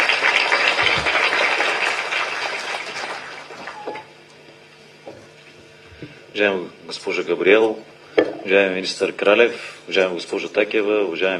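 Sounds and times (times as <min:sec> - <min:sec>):
audience applause: 0:00.0 - 0:04.0
speech: 0:06.4 - 0:11.3.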